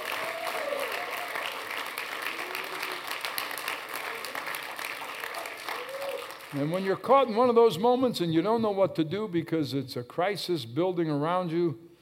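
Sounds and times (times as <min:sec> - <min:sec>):
audience clapping hands: 0:00.0 - 0:07.1
speech: 0:06.5 - 0:11.8.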